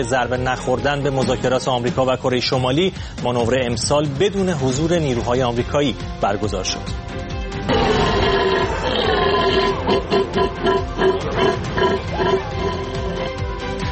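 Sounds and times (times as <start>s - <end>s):
speech: 0.0s - 7.2s, 9.8s - 12.7s
hunter imitating a deer call: 7.8s - 13.3s.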